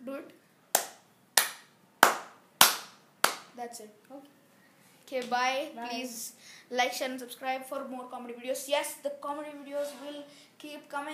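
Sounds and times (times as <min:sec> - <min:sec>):
single hand clap: 0:00.8 - 0:03.5
speech: 0:03.6 - 0:04.4, 0:05.1 - 0:11.1.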